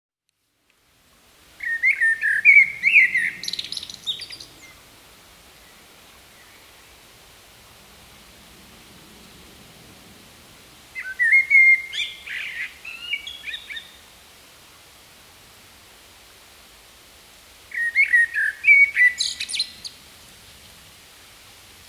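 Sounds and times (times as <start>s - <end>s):
Common blackbird singing: 1.6s - 4.8s, 11.0s - 14.0s, 17.7s - 20.0s.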